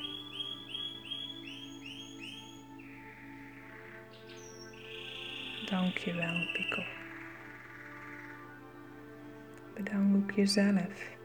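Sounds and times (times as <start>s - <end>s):
pet mouse squeaking: 0.0s - 8.5s
speech: 5.7s - 7.0s, 9.8s - 11.2s.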